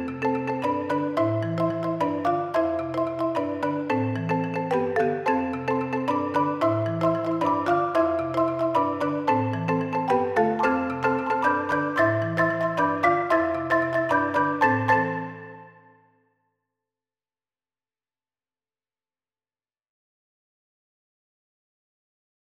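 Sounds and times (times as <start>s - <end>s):
six marimbas playing: 0.0s - 15.9s.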